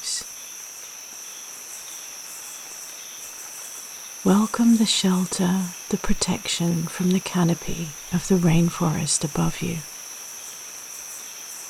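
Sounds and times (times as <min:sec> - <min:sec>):
dense chorus of rainforest insects chirping: 0:00.0 - 0:11.6
soft hiss: 0:00.0 - 0:11.6
speech: 0:04.2 - 0:09.9.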